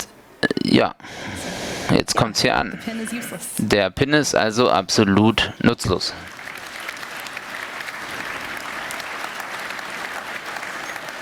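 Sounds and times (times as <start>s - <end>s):
speech: 0.7s - 6.4s
audience applause in a hall: 5.9s - 11.2s.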